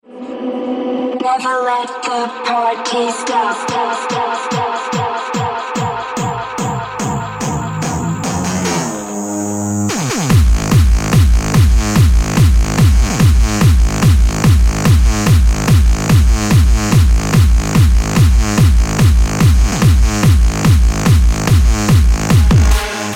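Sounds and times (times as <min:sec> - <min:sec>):
extreme bass rock music: 0:00.6 - 0:23.1.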